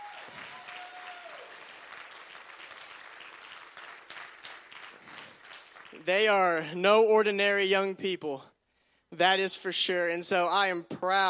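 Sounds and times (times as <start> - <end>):
audience applause: 0.0 - 6.1
speech: 5.9 - 8.5, 9.1 - 11.2.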